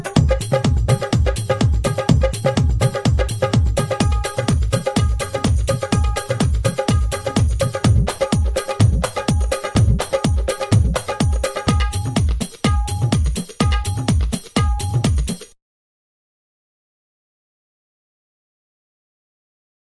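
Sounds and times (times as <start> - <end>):
Bollywood groove: 0.0 - 15.6.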